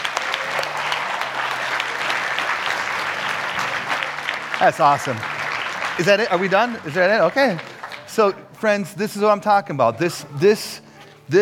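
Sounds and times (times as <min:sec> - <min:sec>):
crowd applauding: 0:00.0 - 0:08.4
speech: 0:04.6 - 0:05.4, 0:06.0 - 0:11.4.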